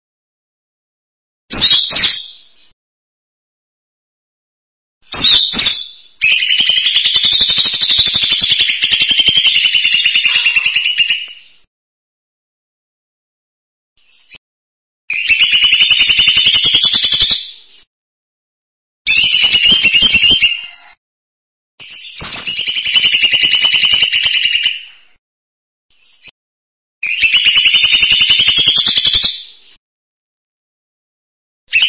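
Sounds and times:
bird song: 1.5s - 2.8s, 5.0s - 11.7s, 14.0s - 14.4s, 15.1s - 17.9s, 19.1s - 21.0s, 21.8s - 25.2s, 25.9s - 26.4s, 27.0s - 29.8s, 31.7s - 31.8s.

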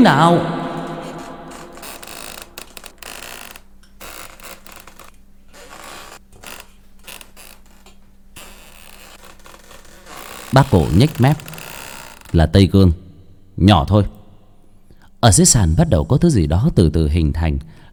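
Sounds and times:
speech: 0.0s - 0.6s, 10.5s - 11.5s, 12.3s - 13.0s, 13.6s - 14.2s, 15.2s - 17.8s
puppet twisting with mechanical creaks and ratchet-like clicks: 0.8s - 14.3s.

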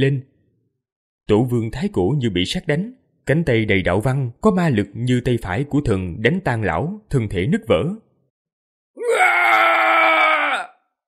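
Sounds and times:
speech: 0.0s - 0.3s, 1.3s - 8.0s
man screaming in pain: 9.0s - 10.8s.

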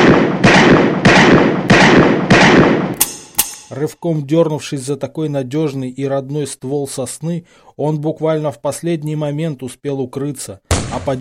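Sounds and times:
revolver gunshots in snowy woods: 0.0s - 3.8s
speech: 3.8s - 11.1s.

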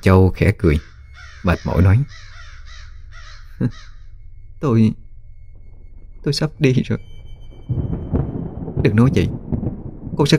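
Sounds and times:
speech: 0.0s - 2.3s, 3.6s - 3.9s, 4.6s - 5.0s, 6.2s - 7.1s, 7.7s - 8.2s, 8.8s - 9.5s, 10.2s - 10.3s
crows cawing outside a window: 0.7s - 4.2s.

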